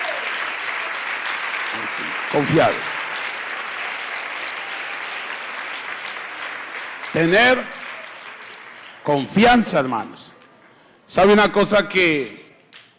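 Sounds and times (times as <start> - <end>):
loud audience applause: 0.0 - 9.4
speech: 1.8 - 3.0, 7.1 - 7.8, 9.0 - 10.4, 11.1 - 12.4.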